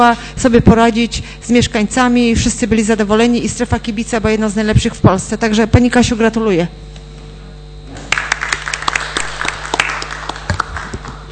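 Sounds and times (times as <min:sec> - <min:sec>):
speech: 0:00.0 - 0:06.9
crowd applauding: 0:08.0 - 0:11.2.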